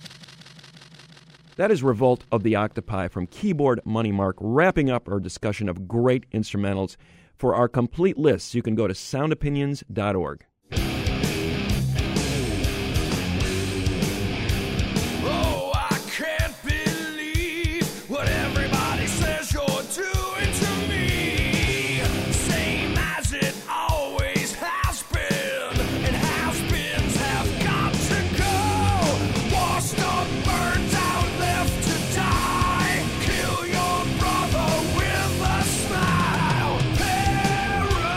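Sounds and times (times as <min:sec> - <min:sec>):
speech: 0:01.6 - 0:10.9
heavy metal song: 0:10.7 - 0:38.1.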